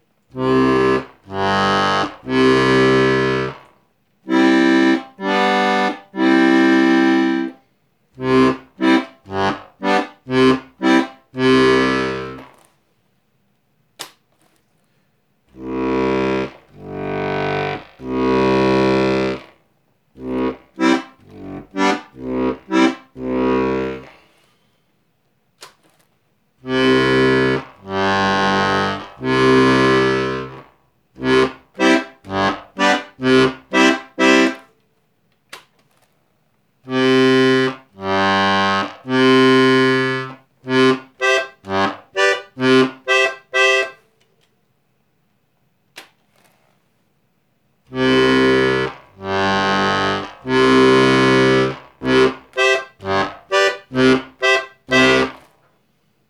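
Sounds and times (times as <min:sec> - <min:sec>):
Scandalli accordion bass side: 0:00.0 - 0:07.6, 0:08.2 - 0:12.7, 0:15.5 - 0:24.5, 0:26.6 - 0:34.7, 0:36.8 - 0:44.1, 0:47.9 - 0:55.6.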